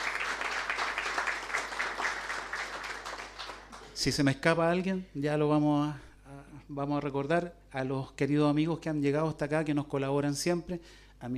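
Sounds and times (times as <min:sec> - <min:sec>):
crowd applauding: 0:00.0 - 0:04.1
speech: 0:04.0 - 0:11.3.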